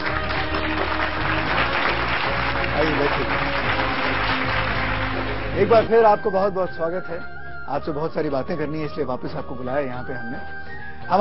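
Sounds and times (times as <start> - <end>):
loud applause welcoming a guest: 0.0 - 5.7
speech: 2.8 - 3.4, 5.6 - 11.1.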